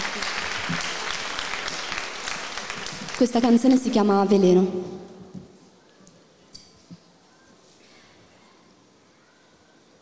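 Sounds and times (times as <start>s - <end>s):
audience applause: 0.0s - 3.9s
speech: 3.2s - 4.9s.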